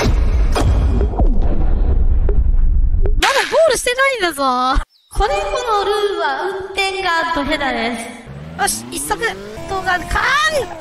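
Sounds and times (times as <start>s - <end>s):
booming explosions: 0.2s - 3.2s
low rumble: 0.3s - 3.2s
speech: 4.2s - 10.7s.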